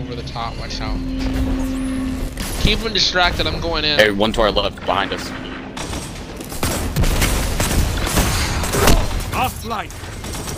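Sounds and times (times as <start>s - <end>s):
speech: 0.1s - 1.8s, 2.6s - 5.5s, 9.4s - 10.0s
gunfire in a first-person shooter video game match: 4.8s - 10.5s.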